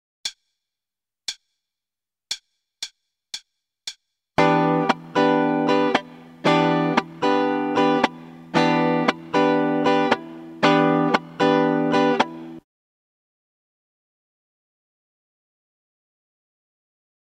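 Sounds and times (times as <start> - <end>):
starter guitar rhythm: 4.4 - 12.6.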